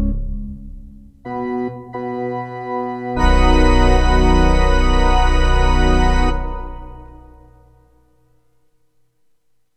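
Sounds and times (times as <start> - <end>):
organ music on an LX-500: 0.0 - 7.8.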